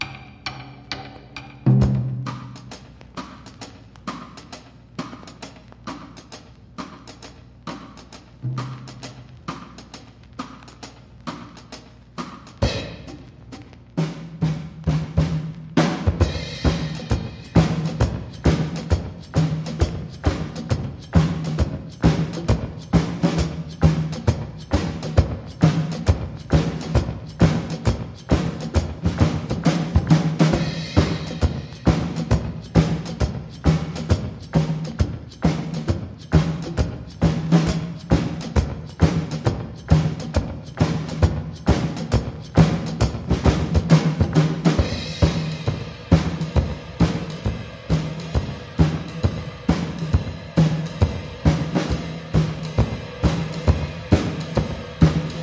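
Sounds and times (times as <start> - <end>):
drums: 0.0 - 55.4.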